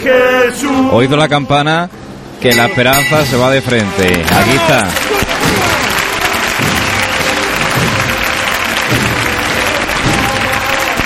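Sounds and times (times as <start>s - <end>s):
speech: 0.0s - 5.6s
audience applauding during religious procession: 3.6s - 11.0s.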